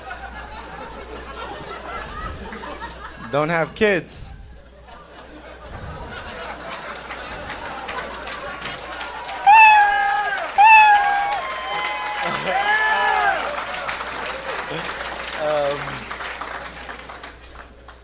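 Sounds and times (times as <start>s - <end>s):
laughter: 0.0s - 17.2s
speech: 3.3s - 4.3s
crowd cheering and applauding: 6.6s - 18.0s.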